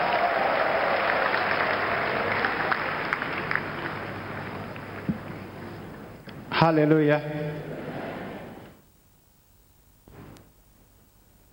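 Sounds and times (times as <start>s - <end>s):
audience applause: 0.0s - 5.4s
speech: 6.6s - 7.7s.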